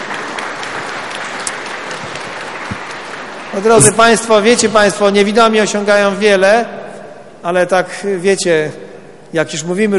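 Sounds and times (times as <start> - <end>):
audience applause: 0.0 - 4.7
speech: 3.5 - 6.8, 7.4 - 9.9.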